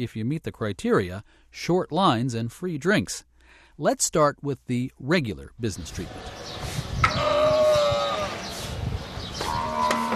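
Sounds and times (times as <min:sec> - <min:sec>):
speech: 0:00.0 - 0:07.3
camel vocalizing at a desert dairy: 0:07.0 - 0:08.8, 0:09.4 - 0:10.1.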